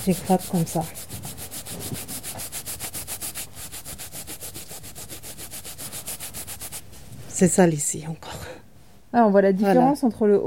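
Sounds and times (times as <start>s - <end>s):
speech: 0.0s - 1.1s, 7.4s - 8.4s, 9.1s - 10.4s
toothbrush scrubbing a doll: 0.0s - 6.8s.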